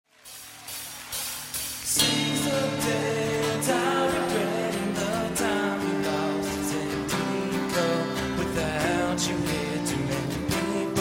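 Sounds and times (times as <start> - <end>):
person singing live: 0.3 - 10.9.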